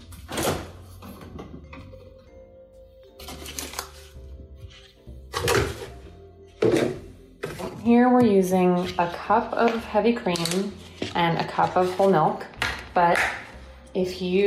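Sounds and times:
refrigerator door opening and closing: 0:00.0 - 0:01.9, 0:05.3 - 0:07.0
speech: 0:08.2 - 0:13.2, 0:14.0 - 0:14.4.

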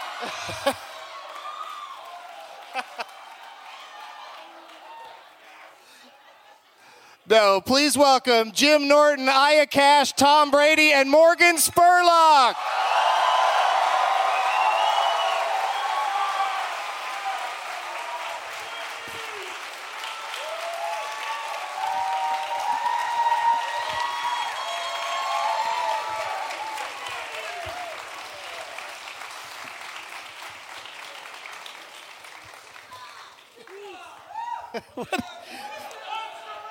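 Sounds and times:
laughter: 0:00.0 - 0:01.0, 0:02.6 - 0:03.3, 0:05.0 - 0:07.2, 0:34.6 - 0:36.1
people whooping and shouting: 0:00.0 - 0:05.3, 0:12.6 - 0:28.8, 0:33.7 - 0:36.6
studio audience clapping: 0:00.0 - 0:05.7, 0:11.8 - 0:34.4, 0:35.0 - 0:36.6
speech: 0:00.2 - 0:00.9, 0:02.8 - 0:03.1, 0:07.3 - 0:12.8.

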